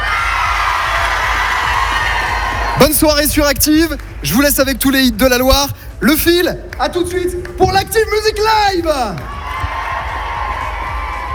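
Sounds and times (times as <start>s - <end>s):
concert crowd cheering and shouting: 0.0s - 3.9s, 6.8s - 11.3s
speech: 2.8s - 9.4s.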